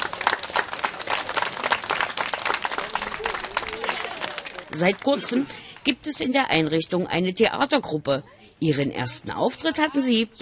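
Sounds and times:
children clapping enthusiastically: 0.0 - 5.8
excited children's voices: 2.6 - 5.6
speech: 4.7 - 10.4.

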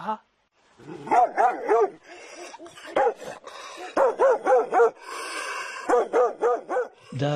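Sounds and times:
dog barking in yips and yelps: 1.0 - 5.0, 5.8 - 7.0.

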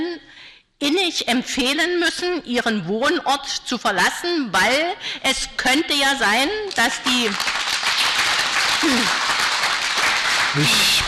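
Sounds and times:
speech: 0.8 - 7.6, 8.8 - 9.3, 10.5 - 11.0
audience clapping: 6.7 - 11.0.

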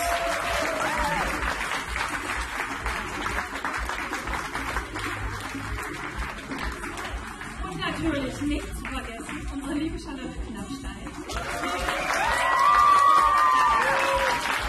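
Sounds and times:
audience applause: 0.0 - 8.0, 11.2 - 14.6.

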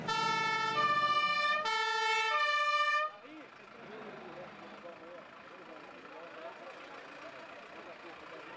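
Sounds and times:
fire engine siren in parade: 0.1 - 3.2.

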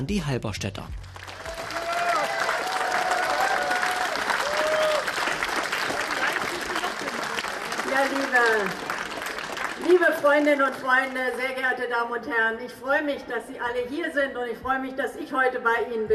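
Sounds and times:
speech: 0.0 - 1.1, 7.9 - 8.9, 9.8 - 16.1
crowd applause at rally: 1.0 - 11.4
voices cheering: 1.4 - 9.0.

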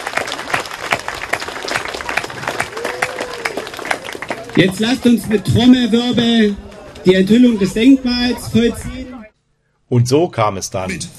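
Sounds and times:
audience applause: 0.0 - 5.8
speech: 4.6 - 9.1, 9.9 - 11.1.

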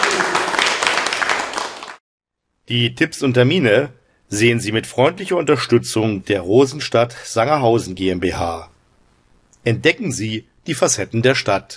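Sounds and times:
audience applause: 0.0 - 2.0
speech: 2.7 - 8.7, 9.6 - 11.7.

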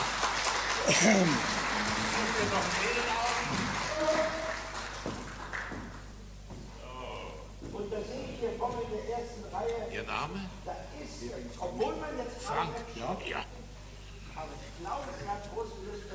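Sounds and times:
audience applause: 0.0 - 6.1
speech: 0.9 - 1.6, 2.4 - 4.4, 8.0 - 13.6, 14.4 - 16.1.

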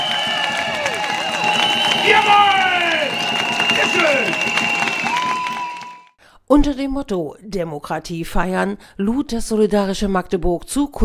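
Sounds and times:
scattered clapping: 0.0 - 6.1
large outdoor crowd cheering and shouting: 0.0 - 6.2
speech: 6.5 - 11.0.

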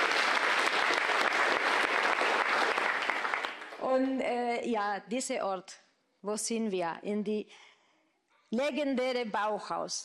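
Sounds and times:
audience applause: 0.0 - 3.8
speech: 4.0 - 7.7, 8.5 - 10.0.

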